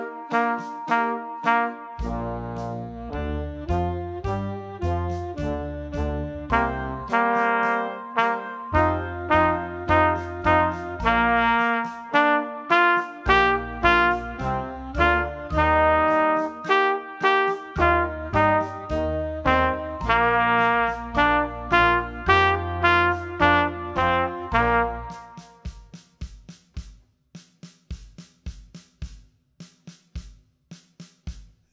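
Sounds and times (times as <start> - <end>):
trumpet playing louder and slower: 0.0 - 5.6, 6.5 - 25.6.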